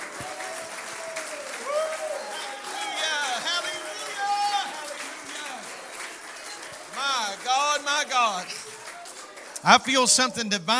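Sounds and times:
audience clapping hands: 0.0s - 10.7s
speech: 9.6s - 10.7s.

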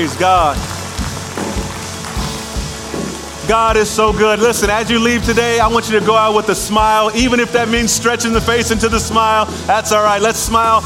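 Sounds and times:
speech: 0.0s - 0.8s, 3.5s - 10.8s
audience clapping: 0.0s - 4.8s.

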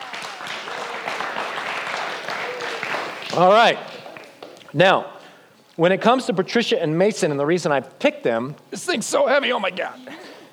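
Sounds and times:
audience applause: 0.0s - 4.6s
speech: 3.4s - 3.9s, 4.7s - 5.1s, 5.8s - 10.2s.

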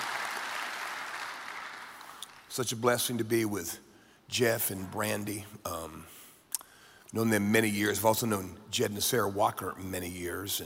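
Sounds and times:
audience applause: 0.0s - 2.5s
speech: 2.6s - 6.2s, 7.1s - 10.6s.

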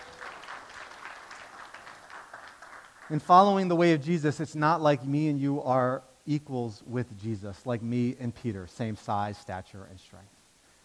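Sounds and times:
faint applause from a church congregation: 0.0s - 3.3s
speech: 3.1s - 10.4s.

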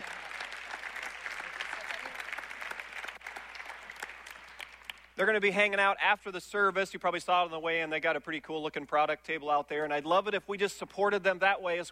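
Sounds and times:
audience applause: 0.0s - 5.2s
speech: 5.2s - 11.8s.

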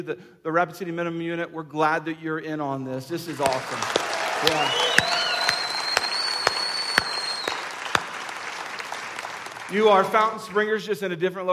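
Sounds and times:
speech: 0.0s - 5.2s, 9.7s - 11.5s
audience applause: 3.2s - 10.7s.

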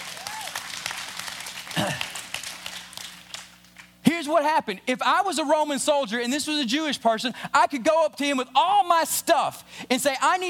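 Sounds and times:
audience hand clapping: 0.0s - 4.0s
speech: 4.2s - 10.4s.

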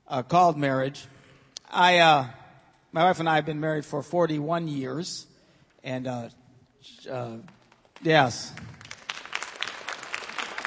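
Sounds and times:
speech: 0.1s - 8.8s
audience applause: 8.0s - 10.6s.

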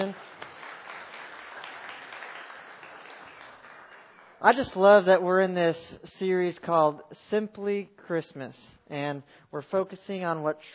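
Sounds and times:
speech: 0.0s - 0.3s, 4.4s - 10.7s
audience applause: 0.0s - 4.4s.

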